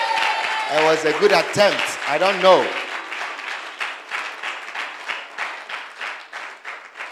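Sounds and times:
audience applause: 0.0 - 7.1
speech: 0.7 - 2.8.

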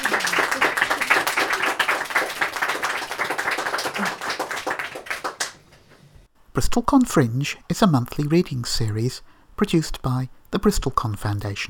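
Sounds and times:
audience applause: 0.0 - 5.7
speech: 6.6 - 11.6.

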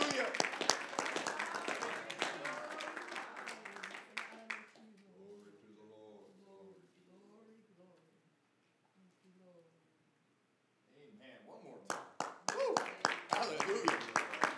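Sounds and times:
audience clapping hands: 0.0 - 4.8, 11.9 - 14.5.

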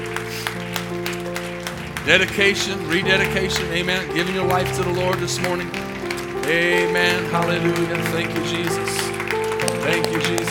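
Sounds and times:
audience clapping: 0.0 - 10.4
speech: 2.0 - 9.1, 9.8 - 10.4.

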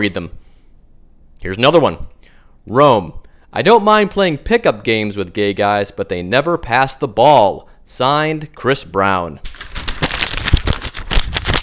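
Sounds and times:
speech: 0.0 - 0.5, 1.4 - 9.7
paper being crumpled: 9.4 - 11.6.

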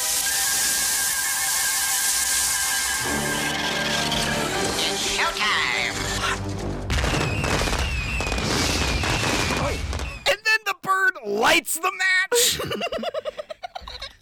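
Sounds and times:
igloo explosion: 0.0 - 10.3
speech: 5.3 - 6.6, 11.5 - 13.1.

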